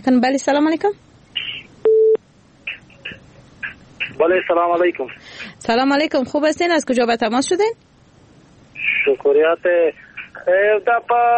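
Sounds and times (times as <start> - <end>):
speech: 0.0 - 1.1, 4.2 - 7.9, 9.0 - 11.3
telephone busy tone after a caller's line was cut off: 1.8 - 2.2.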